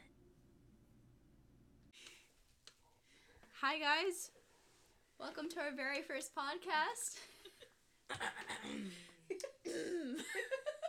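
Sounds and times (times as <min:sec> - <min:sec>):
speech: 0:03.6 - 0:04.4, 0:05.2 - 0:07.3
person coughing from dirt in the throat: 0:08.1 - 0:10.4.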